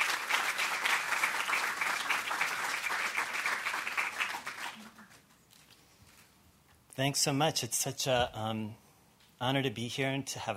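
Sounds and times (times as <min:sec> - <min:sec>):
audience applause: 0:00.0 - 0:05.3
speech: 0:07.0 - 0:08.8, 0:09.4 - 0:10.5.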